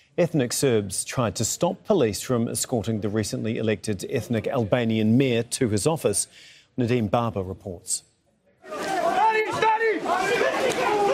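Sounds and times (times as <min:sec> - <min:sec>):
speech: 0:00.2 - 0:08.1
crowd of protesters shouting and chanting outside government building: 0:08.5 - 0:11.1.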